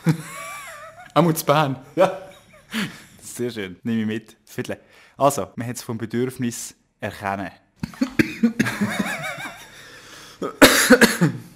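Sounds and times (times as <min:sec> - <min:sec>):
speech: 0:00.0 - 0:00.4, 0:01.2 - 0:08.1, 0:08.8 - 0:09.1
laughter: 0:00.0 - 0:01.2, 0:07.9 - 0:09.8
coughing after drinking: 0:07.8 - 0:09.7, 0:10.4 - 0:11.5.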